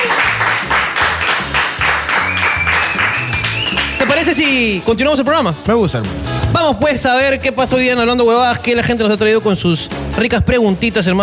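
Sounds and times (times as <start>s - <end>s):
audience applause: 0.0s - 4.6s
speech: 4.3s - 11.2s.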